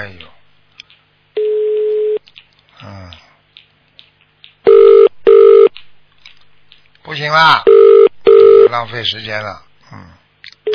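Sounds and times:
telephone line tones: 4.7 - 5.7, 7.7 - 8.7
speech: 7.3 - 7.7, 8.7 - 9.7
murmured voice: 9.8 - 10.3.

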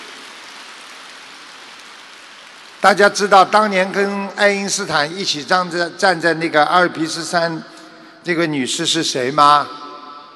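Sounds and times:
audience applause: 0.0 - 3.2
speech: 2.8 - 9.8.

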